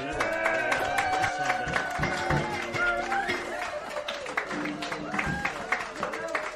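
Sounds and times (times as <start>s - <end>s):
studio audience applauding: 0.0s - 6.5s
studio audience cheering: 0.0s - 6.5s.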